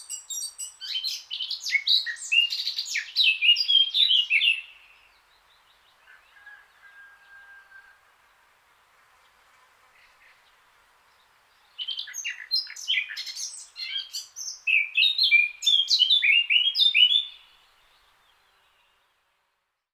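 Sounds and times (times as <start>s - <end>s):
Eurasian blackcap Sylvia atricapilla song: 0.0s - 6.5s, 10.0s - 19.1s.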